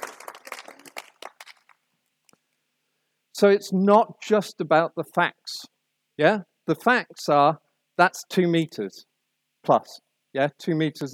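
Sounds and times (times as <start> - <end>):
audience applause: 0.0 - 1.8
speech: 3.4 - 11.1.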